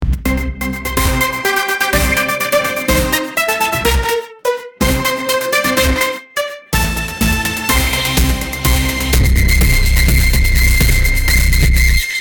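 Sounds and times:
phonk intro music: 0.0 - 12.1.

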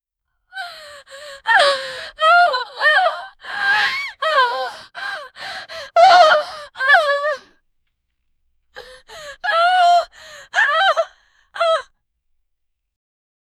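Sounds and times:
woman grunting and moaning: 0.6 - 7.4, 8.8 - 11.8.

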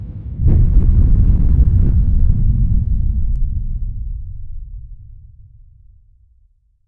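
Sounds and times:
volcano eruption: 0.4 - 5.0.

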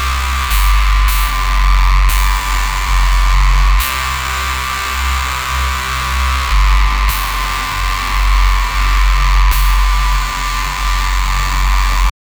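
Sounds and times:
nasty sounding drum and bass reese bass: 0.2 - 12.1.

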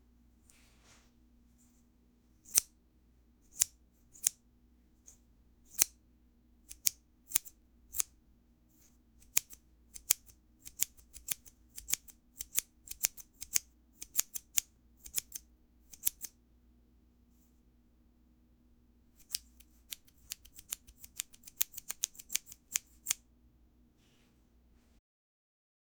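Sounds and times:
scissors cutting hair: 2.5 - 2.7, 3.5 - 4.4, 6.7 - 8.1, 8.8 - 16.4, 19.2 - 23.2.

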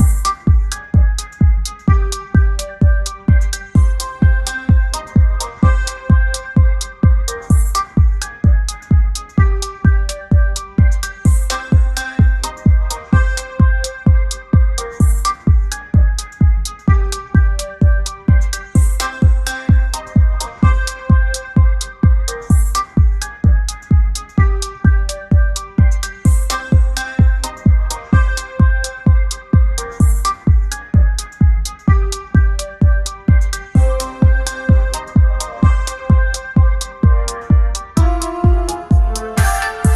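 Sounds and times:
distant bar club music melody: 0.0 - 39.9.

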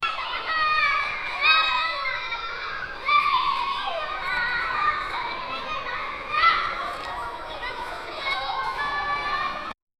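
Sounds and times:
children playing: 0.0 - 9.8.

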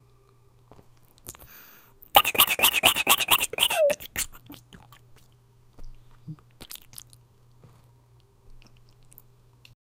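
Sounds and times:
exaggerated slurping: 2.2 - 5.0.

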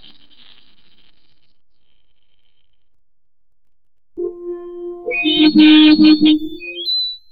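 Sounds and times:
extreme warning alarm: 4.2 - 6.9.

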